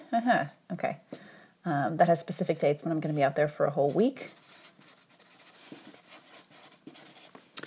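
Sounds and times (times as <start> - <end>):
speech: 0.1 - 4.9
pen writing dates by hand: 3.9 - 7.4.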